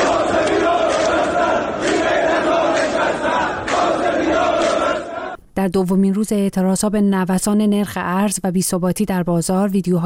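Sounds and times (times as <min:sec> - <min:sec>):
protesters in Tehran chanting anti-government slogans: 0:00.0 - 0:05.4
speech: 0:05.6 - 0:10.0.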